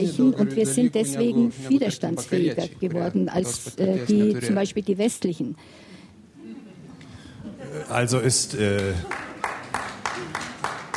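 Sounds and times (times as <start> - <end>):
speech: 0.0 - 6.0, 7.7 - 9.3
slow audience clapping: 8.1 - 10.9.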